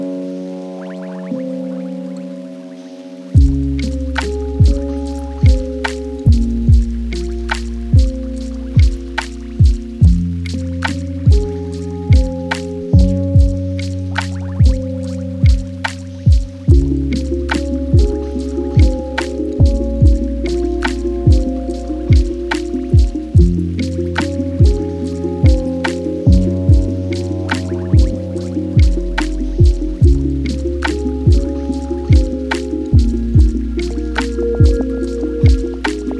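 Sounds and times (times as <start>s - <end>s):
lofi hip hop: 3.4s - 36.1s.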